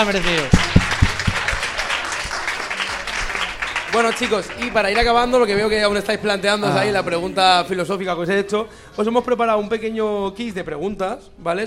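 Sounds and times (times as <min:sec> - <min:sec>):
speech: 0:00.0 - 0:00.7, 0:03.9 - 0:11.6
audience applause: 0:00.0 - 0:07.0.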